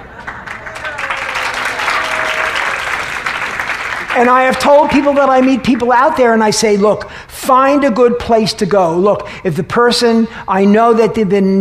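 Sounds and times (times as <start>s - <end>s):
audience applause: 0.0s - 5.6s
speech: 4.2s - 11.5s.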